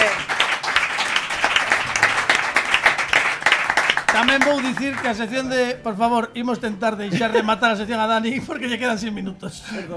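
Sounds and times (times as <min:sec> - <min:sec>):
applause: 0:00.0 - 0:05.3
speech: 0:04.2 - 0:09.9.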